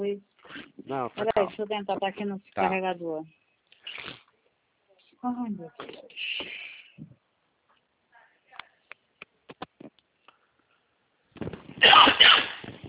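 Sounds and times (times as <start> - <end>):
speech: 0.0 - 0.3, 0.9 - 4.2, 5.2 - 7.1
forceful, harsh cough from someone with a cold: 11.8 - 12.7.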